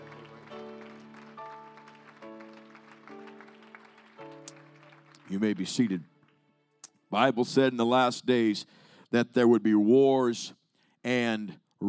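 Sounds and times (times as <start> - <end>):
audience clapping hands: 0.0 - 6.4
speech: 5.3 - 6.1, 7.1 - 11.8.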